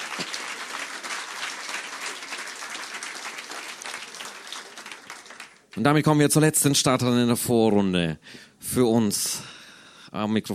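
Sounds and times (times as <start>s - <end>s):
audience applause: 0.0s - 5.8s
speech: 5.8s - 10.5s.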